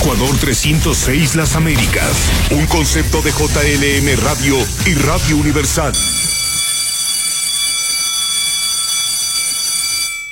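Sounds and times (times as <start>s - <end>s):
speech: 0.1s - 6.2s
bell ringing: 5.6s - 10.3s.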